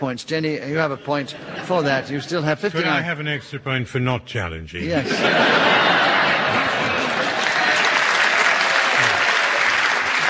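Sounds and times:
speech: 0.0s - 5.9s
laughter: 0.6s - 3.1s, 4.8s - 10.2s
audience applause: 5.3s - 10.2s.

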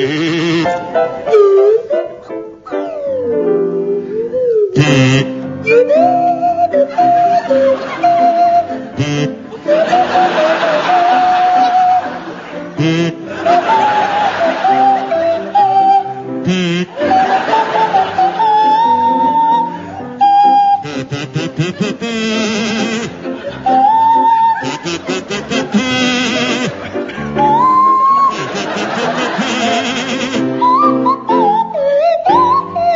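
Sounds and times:
buzzy kazoo playing a tune: 0.0s - 32.9s
sliding Swanee whistle: 5.6s - 8.8s, 13.5s - 21.3s, 22.3s - 32.9s
laughter: 5.9s - 16.2s, 16.8s - 31.3s.

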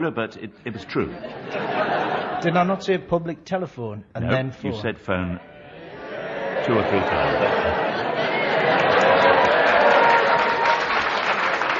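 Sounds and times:
speech: 0.0s - 5.5s, 6.6s - 8.8s
laughter: 0.7s - 2.7s, 5.8s - 10.5s
studio audience clapping: 8.4s - 11.7s.

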